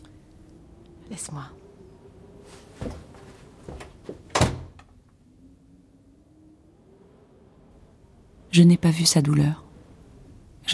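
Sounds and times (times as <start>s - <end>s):
speech: 1.1s - 1.6s, 8.6s - 9.6s
door being shut sharply: 3.8s - 4.9s.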